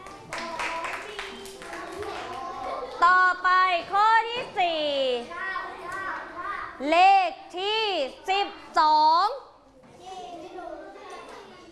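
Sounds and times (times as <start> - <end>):
students clapping in a classroom: 0.0 - 2.6
speech: 3.0 - 5.4, 6.8 - 9.1.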